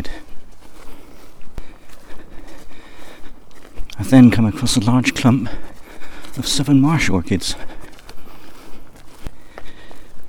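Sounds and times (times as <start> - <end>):
footsteps walking through grassy fields at Cobden: 0.0 - 10.2
speech: 4.0 - 5.7, 6.4 - 7.7.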